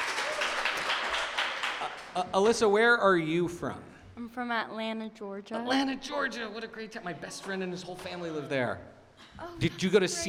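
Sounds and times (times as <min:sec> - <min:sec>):
crowd applause: 0:00.0 - 0:02.2
speech: 0:02.2 - 0:10.2.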